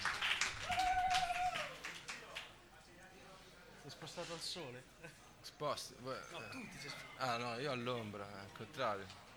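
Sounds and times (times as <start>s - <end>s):
audience applause for a poet: 0.0s - 2.4s
speech: 3.9s - 9.2s.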